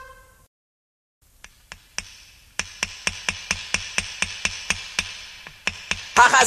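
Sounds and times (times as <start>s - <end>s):
hammering nails: 1.3s - 6.4s.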